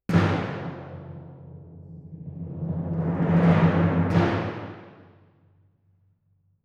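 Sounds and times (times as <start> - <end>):
timpani: 0.0 - 5.4.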